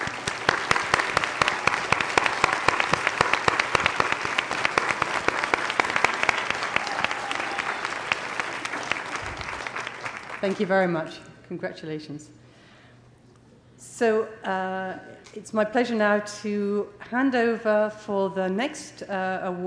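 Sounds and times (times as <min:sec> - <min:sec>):
roomful of people applauding award recipients: 0:00.0 - 0:10.8
speech: 0:10.4 - 0:12.4, 0:14.0 - 0:19.6.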